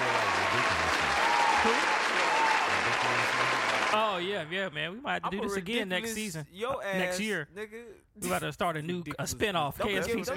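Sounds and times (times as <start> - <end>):
applause: 0.0 - 4.2
speech: 4.0 - 10.3.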